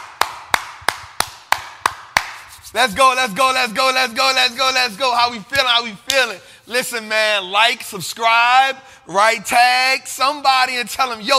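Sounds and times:
audience clapping: 0.0s - 2.4s
speech: 2.7s - 11.3s.

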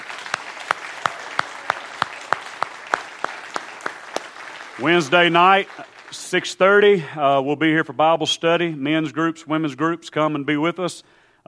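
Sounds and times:
audience applause: 0.0s - 6.9s
speech: 4.8s - 11.4s.

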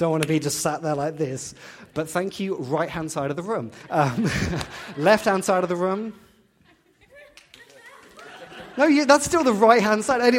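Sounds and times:
speech: 0.0s - 6.2s, 8.8s - 10.3s
laughter: 1.4s - 10.3s
audience applause: 7.4s - 9.8s.

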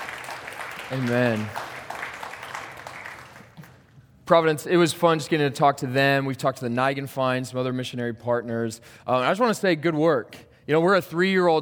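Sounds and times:
audience applauding: 0.0s - 3.9s
speech: 0.9s - 1.6s, 4.3s - 11.6s.

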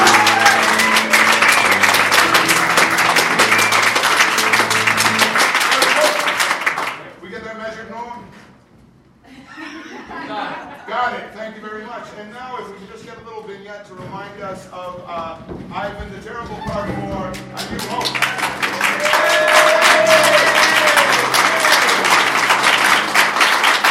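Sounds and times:
audience applause: 0.0s - 7.1s, 17.3s - 23.8s.

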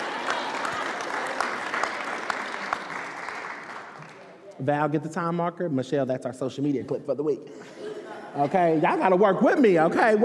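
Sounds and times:
audience applause: 0.0s - 4.3s
speech: 4.6s - 7.8s, 8.4s - 10.2s
laughter: 7.5s - 9.6s.

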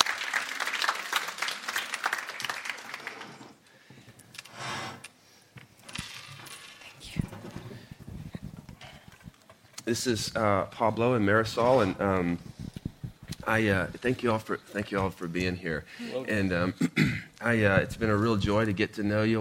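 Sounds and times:
church congregation applauding at a Sunday service: 0.0s - 3.7s
speech: 9.9s - 12.5s, 13.5s - 19.4s.

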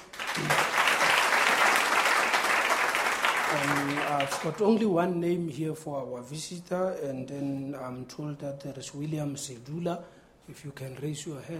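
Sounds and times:
audience applause: 0.0s - 4.6s
speech: 3.6s - 11.5s.

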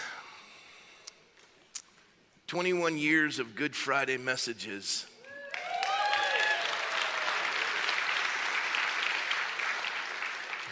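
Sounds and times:
speech: 2.5s - 5.1s
whoops: 5.2s - 7.7s
crowd applauding: 5.4s - 10.7s.

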